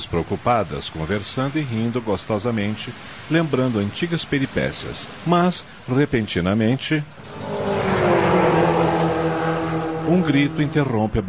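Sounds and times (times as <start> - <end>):
speech: 0.1 - 7.5, 10.1 - 11.2
car speeding: 7.1 - 11.2.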